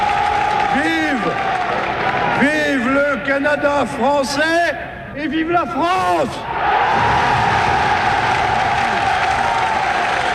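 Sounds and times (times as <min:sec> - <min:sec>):
crowd cheering and applauding: 0:00.0 - 0:02.9, 0:06.6 - 0:10.3
speech: 0:03.4 - 0:07.0.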